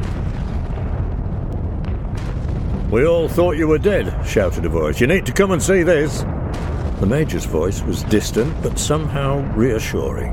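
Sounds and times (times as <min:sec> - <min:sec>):
artillery shells exploding in a barrage: 0:00.0 - 0:10.3
speech: 0:02.9 - 0:06.4, 0:07.0 - 0:10.3.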